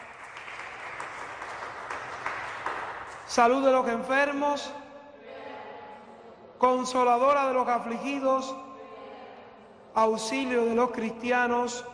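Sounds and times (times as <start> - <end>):
applause: 0.0 - 3.4
speech: 3.3 - 4.8, 6.6 - 8.6, 10.0 - 11.9.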